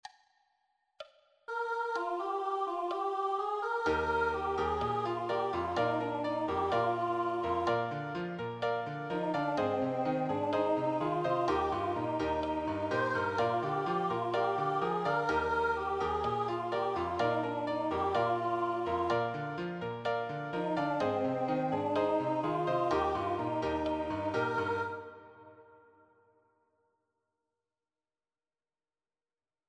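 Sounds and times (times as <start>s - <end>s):
musical accompaniment: 1.5s - 25.7s.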